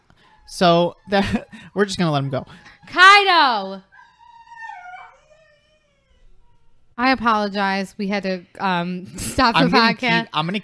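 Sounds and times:
dog whining at another dog across the street: 0.2s - 7.0s
speech: 0.5s - 3.9s, 7.0s - 10.6s.

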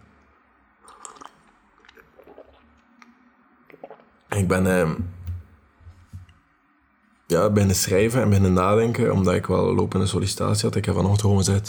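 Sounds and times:
brief swallows: 0.8s - 4.3s
sipping tea: 0.8s - 4.4s
speech: 4.4s - 5.2s, 7.4s - 11.6s.

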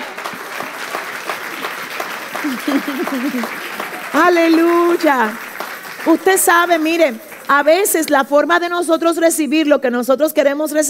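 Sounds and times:
audience applause: 0.0s - 8.2s
laughter: 0.4s - 5.0s
speech: 2.4s - 5.4s, 6.0s - 10.8s.

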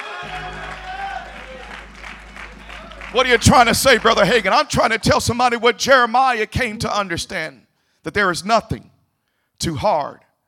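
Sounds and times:
crowd voices: 0.0s - 4.5s
audience clapping hands: 0.0s - 4.6s
speech: 0.2s - 0.9s, 3.1s - 8.9s, 9.6s - 10.2s
low constant hum: 0.3s - 4.6s.

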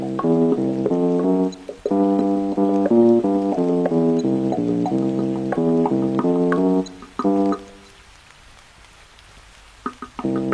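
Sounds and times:
music: 0.0s - 7.9s, 9.9s - 10.5s
rain: 0.0s - 10.5s.

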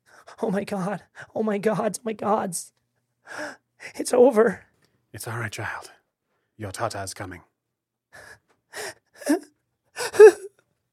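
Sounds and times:
speech: 0.4s - 6.0s, 6.6s - 7.5s
open weeping echoing through a room: 10.0s - 10.5s.

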